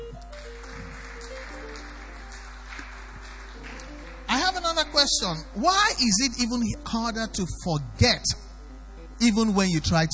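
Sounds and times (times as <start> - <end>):
audience clapping: 0.0 - 5.5
speech: 5.0 - 8.4, 9.2 - 10.1.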